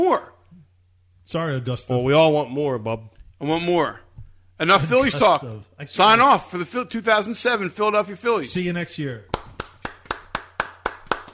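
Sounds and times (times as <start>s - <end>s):
speech: 1.3s - 4.0s, 4.6s - 9.3s
hand clapping: 9.3s - 11.3s.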